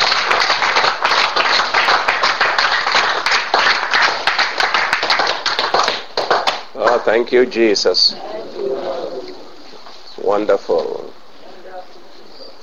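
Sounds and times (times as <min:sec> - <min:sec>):
audience clapping: 0:00.0 - 0:07.3
speech: 0:07.1 - 0:08.3, 0:10.3 - 0:11.0.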